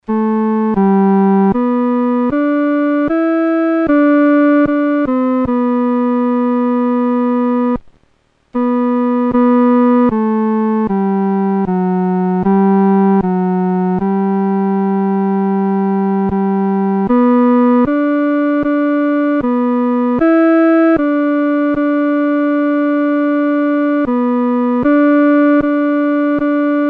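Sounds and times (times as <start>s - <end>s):
solo music third voice: 0.0s - 7.9s, 8.5s - 26.8s.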